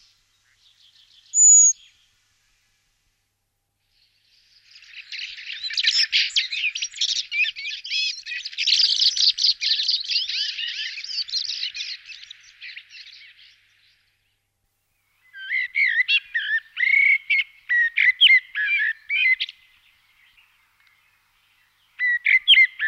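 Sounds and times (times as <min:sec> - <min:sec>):
Eurasian blackbird singing: 0:00.0 - 0:02.1, 0:04.0 - 0:14.2, 0:15.2 - 0:22.8.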